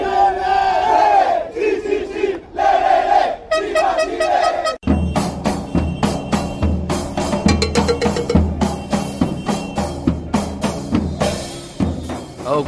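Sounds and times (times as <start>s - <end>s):
Chile football fans singing en masse at the Maracanã Stadium: 0.0s - 4.8s
rhythmic percussive hits: 4.8s - 12.4s.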